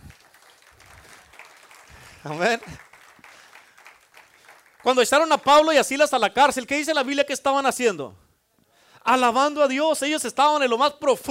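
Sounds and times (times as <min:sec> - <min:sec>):
audience applauding: 0:00.0 - 0:05.7
speech: 0:02.2 - 0:02.9, 0:04.8 - 0:08.2, 0:09.1 - 0:11.2.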